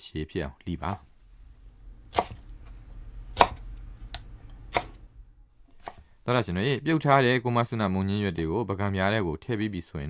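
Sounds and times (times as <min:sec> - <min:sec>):
speech: 0:00.0 - 0:01.1, 0:06.3 - 0:10.0
low steady hum: 0:00.4 - 0:08.8
knife chopping leaf stems on a chopping board: 0:00.9 - 0:07.3.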